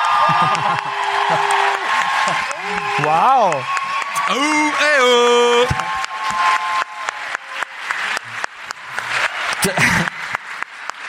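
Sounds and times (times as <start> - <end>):
live audience applause: 0.0 - 11.0
laughter: 0.2 - 2.6, 9.6 - 10.4
speech: 0.3 - 1.7, 2.3 - 6.6, 9.6 - 10.1.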